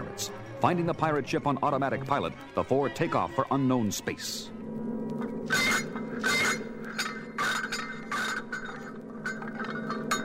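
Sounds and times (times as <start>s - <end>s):
speech: 0.2s - 4.6s, 5.5s - 5.7s
hundreds of turned-off metal robots clinking and clanking together: 5.6s - 10.2s.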